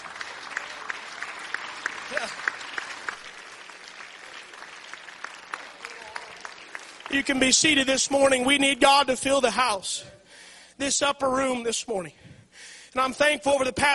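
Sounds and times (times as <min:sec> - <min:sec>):
audience clapping hands: 0:00.0 - 0:08.4
speech: 0:07.1 - 0:10.2, 0:10.8 - 0:12.3, 0:12.9 - 0:13.9.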